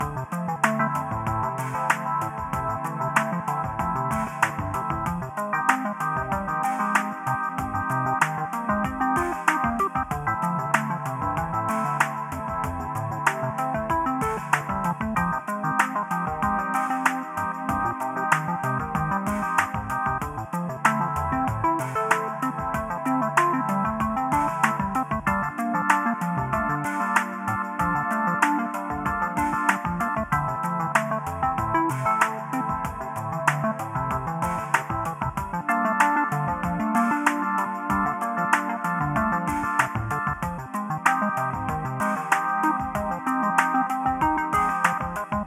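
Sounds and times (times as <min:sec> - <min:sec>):
lo-fi puzzle music: 0:00.0 - 0:45.4.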